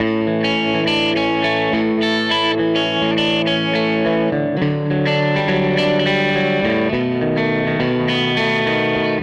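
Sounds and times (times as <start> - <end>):
Gretsch guitar loop: 0.0 - 9.2.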